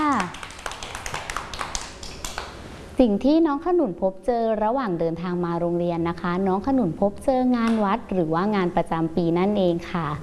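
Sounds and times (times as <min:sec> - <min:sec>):
children clapping for a classmate during a school lesson: 0:00.0 - 0:02.6
speech: 0:03.0 - 0:10.2.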